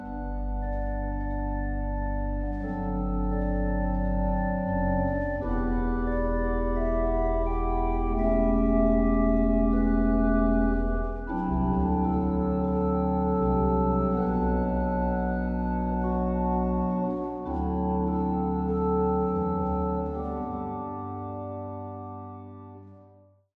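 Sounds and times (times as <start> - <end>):
software organ playing: 0.0 - 23.0.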